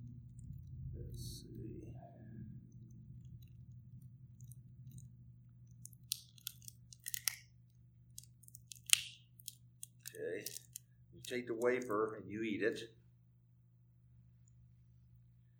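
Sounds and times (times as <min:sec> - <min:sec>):
low steady hum: 0:00.0 - 0:15.5
cellophane top being peeled back from a small communion cup: 0:04.4 - 0:07.4, 0:08.1 - 0:12.1
speech: 0:11.3 - 0:13.0.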